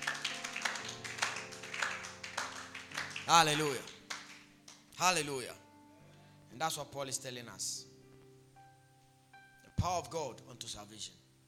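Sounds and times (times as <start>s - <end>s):
audience clapping: 0.0s - 5.0s
speech: 3.3s - 3.9s, 5.0s - 5.6s, 6.6s - 7.9s, 9.8s - 11.2s.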